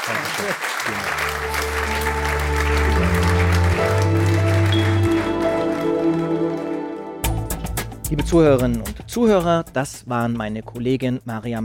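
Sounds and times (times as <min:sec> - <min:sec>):
audience applause: 0:00.0 - 0:07.4
speech: 0:00.1 - 0:01.8, 0:08.1 - 0:11.6.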